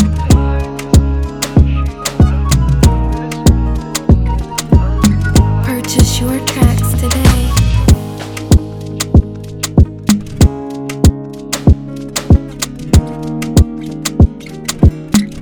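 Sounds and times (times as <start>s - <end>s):
95bpm instrumental beat in B major: 0.0s - 15.4s.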